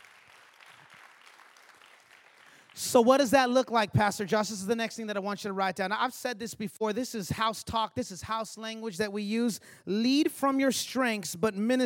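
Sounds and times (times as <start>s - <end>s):
audience clapping hands: 0.0s - 3.3s
speech: 2.8s - 11.8s.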